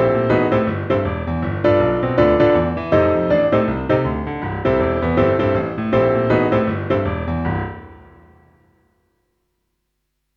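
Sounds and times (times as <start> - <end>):
boogie-woogie rhythm exercise in broken octaves: 0.0 - 8.1.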